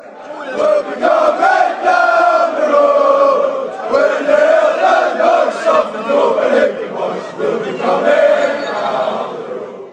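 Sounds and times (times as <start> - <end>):
fans chanting: 0.0 - 9.9.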